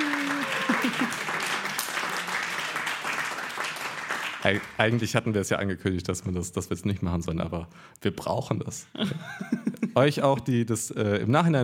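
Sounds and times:
audience clapping: 0:00.0 - 0:05.2
speech: 0:04.4 - 0:11.6.

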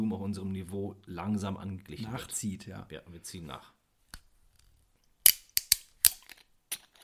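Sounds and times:
speech: 0:00.2 - 0:03.8
screw cap bottle cracking open: 0:05.2 - 0:07.0.

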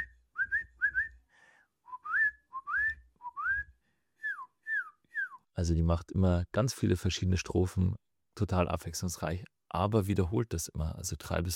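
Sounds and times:
person whistling an imitation of a song thrush: 0:00.0 - 0:01.2, 0:01.9 - 0:05.5
speech: 0:05.6 - 0:11.5.

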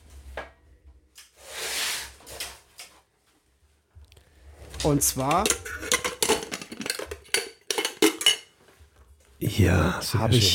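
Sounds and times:
speech: 0:04.8 - 0:05.8, 0:09.4 - 0:10.5
Trangia camping cook set being handled: 0:04.8 - 0:08.6.

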